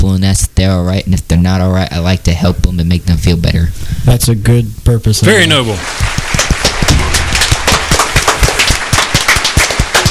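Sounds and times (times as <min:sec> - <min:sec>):
speech: 0:00.4 - 0:06.5
hands clapping: 0:06.0 - 0:10.0.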